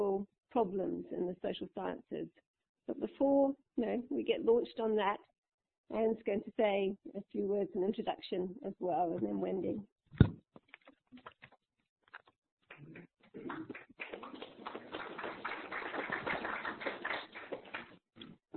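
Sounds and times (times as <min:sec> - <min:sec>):
speech: 0:00.0 - 0:05.3, 0:05.9 - 0:10.4
audience clapping: 0:13.4 - 0:18.0.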